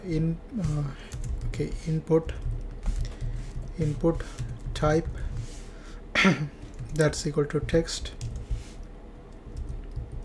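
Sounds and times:
speech: 0.0 - 2.5, 3.8 - 5.2, 6.2 - 8.3
typing on a computer keyboard while entering code: 0.7 - 5.2, 6.6 - 8.5, 9.5 - 10.2.

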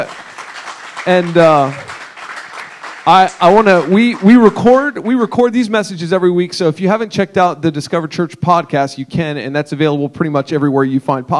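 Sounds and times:
speech: 0.0 - 0.3, 1.0 - 1.9, 3.1 - 11.3
crowd clapping: 0.0 - 5.0.

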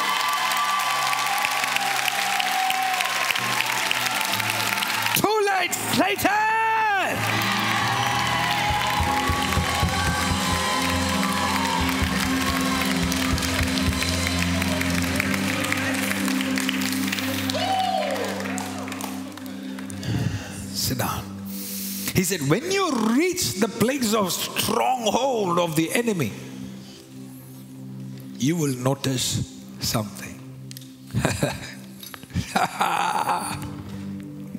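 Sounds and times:
whoops and shouts: 0.0 - 5.3, 6.2 - 15.1, 17.4 - 19.1
audience clapping and cheering: 0.0 - 20.3
speech: 22.3 - 26.5, 28.4 - 30.3, 31.1 - 31.7
laughter: 31.1 - 31.8, 32.4 - 33.8.

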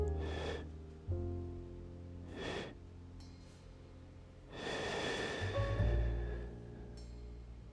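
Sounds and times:
bamboo breathing with held and released breaths: 0.1 - 0.8, 2.2 - 7.4.

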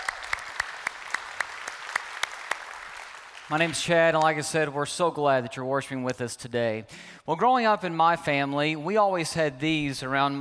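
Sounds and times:
church congregation in North Garnett clapping to welcome online viewers: 0.0 - 4.6
speech: 3.5 - 10.3.

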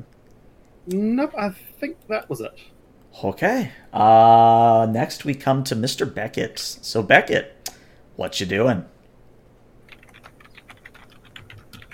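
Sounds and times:
speech: 0.8 - 7.6, 8.2 - 8.9
furious typing on a computer keyboard: 9.9 - 11.9.

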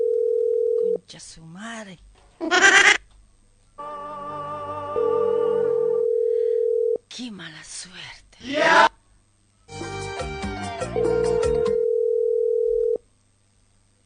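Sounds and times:
telephone ringing tone with no answer: 0.0 - 1.0, 5.0 - 7.0, 11.0 - 13.0
speech: 1.1 - 3.0, 7.2 - 8.8.

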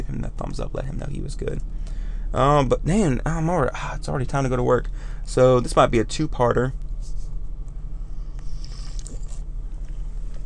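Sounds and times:
speech: 0.4 - 6.8
slurping coffee: 8.4 - 9.4.

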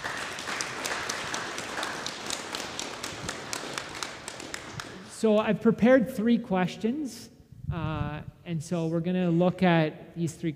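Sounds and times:
church audience applauding to welcome guests to the front: 0.0 - 5.2
speech: 5.2 - 10.5.

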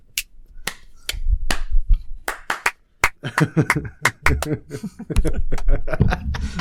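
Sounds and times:
hands clapping in rhythm: 0.2 - 4.6, 5.5 - 5.8
laughter: 3.2 - 6.6.

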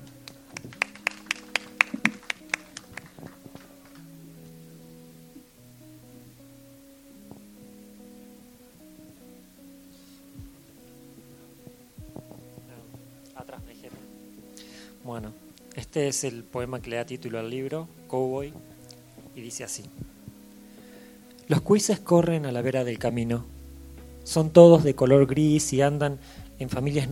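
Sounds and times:
audience applause: 0.2 - 4.0
speech: 15.1 - 18.7, 19.4 - 20.0, 21.6 - 23.5, 24.2 - 27.1.

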